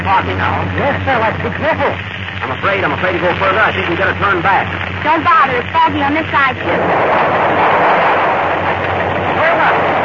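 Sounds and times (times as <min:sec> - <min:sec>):
low drone: 0:00.0 - 0:10.0
speech: 0:00.1 - 0:07.8
thunder of an approaching storm: 0:03.3 - 0:10.0.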